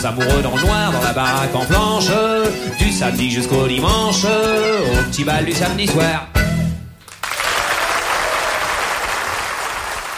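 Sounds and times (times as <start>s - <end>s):
speech: 0.0s - 6.4s
audience applause: 7.1s - 10.1s.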